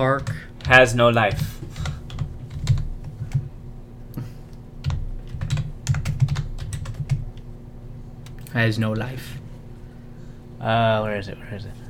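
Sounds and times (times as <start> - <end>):
speech: 0.0 - 1.6, 8.6 - 9.4, 10.6 - 11.8
low steady hum: 0.0 - 11.8
typing on a computer keyboard: 0.1 - 3.5, 4.8 - 7.4.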